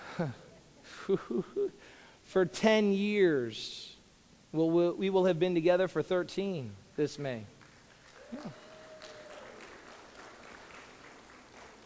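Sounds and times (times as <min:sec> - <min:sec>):
speech: 0:00.2 - 0:00.4, 0:01.0 - 0:03.9, 0:04.5 - 0:07.6, 0:08.3 - 0:08.6
audience applause: 0:07.7 - 0:11.8.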